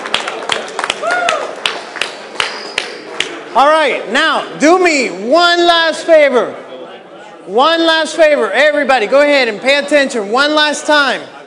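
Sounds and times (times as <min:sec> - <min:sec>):
crowd applauding: 0:00.0 - 0:03.4
speech: 0:03.6 - 0:06.6, 0:07.5 - 0:11.4.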